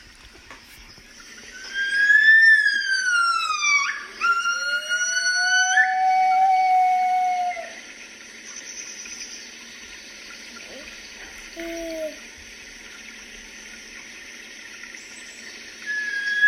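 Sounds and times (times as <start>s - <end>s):
gibbon whooping: 1.6s - 7.8s, 15.9s - 16.4s.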